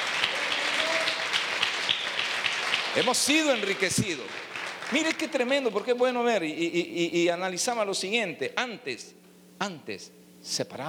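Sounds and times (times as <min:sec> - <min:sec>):
audience applause: 0:00.0 - 0:05.6
speech: 0:03.0 - 0:10.8.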